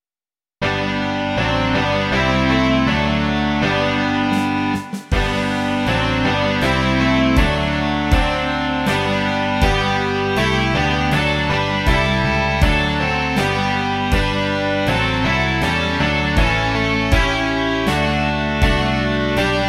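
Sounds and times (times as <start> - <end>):
rock music: 0.6 - 19.6.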